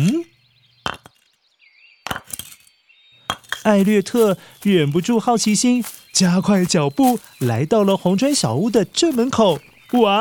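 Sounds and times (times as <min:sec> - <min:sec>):
stones clinking together: 0:00.8 - 0:01.4, 0:02.0 - 0:04.7
speech: 0:03.6 - 0:10.1.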